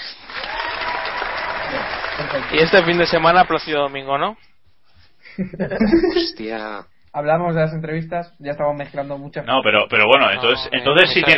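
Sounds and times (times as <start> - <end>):
applause: 0.0 - 4.0
speech: 2.2 - 4.5, 5.4 - 11.3
laughter: 5.2 - 6.4.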